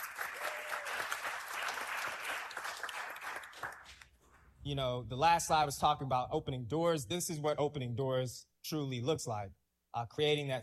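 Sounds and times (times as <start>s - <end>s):
audience applause: 0.0s - 4.0s
speech: 4.7s - 10.6s.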